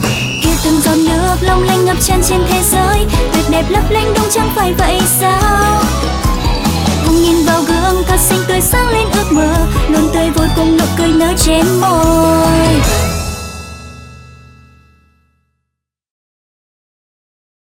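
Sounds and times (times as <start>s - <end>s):
Vietnamese woman singing: 0.4s - 13.0s.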